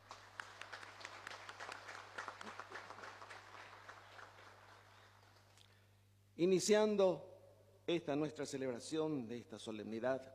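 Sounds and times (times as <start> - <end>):
crowd applauding in a large room: 0.0 - 5.6
speech: 6.4 - 7.3, 7.9 - 10.3.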